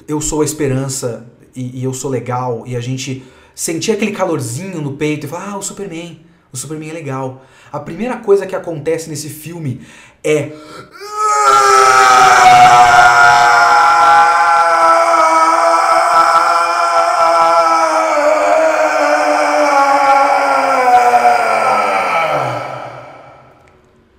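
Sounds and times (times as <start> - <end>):
speech: 0.1 - 13.6
person screaming in pain: 10.9 - 23.6.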